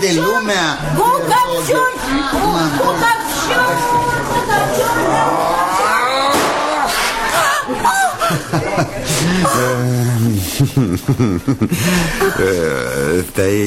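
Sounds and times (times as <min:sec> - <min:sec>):
speech: 0:00.0 - 0:05.6, 0:07.8 - 0:13.6
firecracker exploding: 0:06.3 - 0:06.7
laughter: 0:06.9 - 0:13.2.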